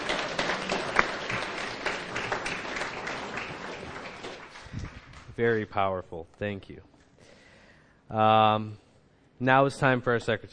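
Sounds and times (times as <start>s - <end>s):
audience applause: 0.0s - 5.4s
speech: 5.4s - 6.9s, 8.1s - 8.8s, 9.4s - 10.5s.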